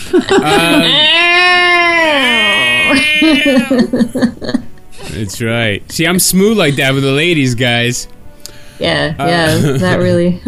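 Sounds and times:
laughter: 0:00.0 - 0:01.2, 0:02.6 - 0:05.4, 0:09.3 - 0:10.2
speech: 0:00.1 - 0:08.2, 0:08.8 - 0:10.4
person imitating a dying cat's meow: 0:00.4 - 0:03.8.

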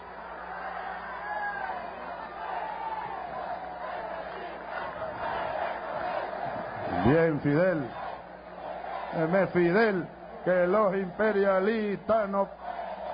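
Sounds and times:
large crowd cheering for Fidel: 0:00.0 - 0:13.1
speech: 0:07.1 - 0:08.0, 0:09.2 - 0:12.6.

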